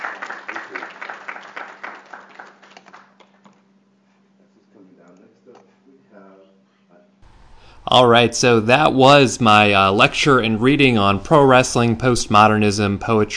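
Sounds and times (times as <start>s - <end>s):
audience applause: 0.0s - 3.4s
steady low hum: 3.2s - 13.3s
speech: 7.8s - 13.3s.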